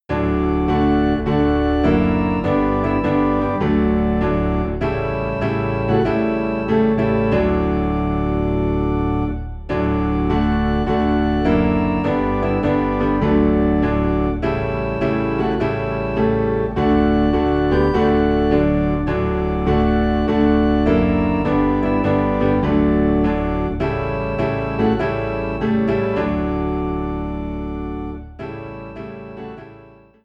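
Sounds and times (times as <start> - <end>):
low piano and organ in D: 0.0 - 30.2.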